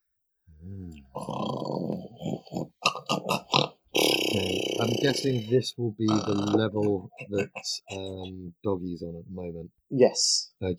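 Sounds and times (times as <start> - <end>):
voice imitating someone snoring: 0.5 - 8.2
speech: 4.4 - 10.7.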